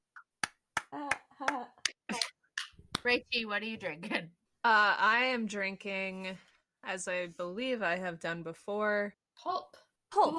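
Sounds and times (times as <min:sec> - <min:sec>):
hand clapping: 0:00.1 - 0:03.1
speech: 0:00.9 - 0:01.8, 0:03.0 - 0:10.3.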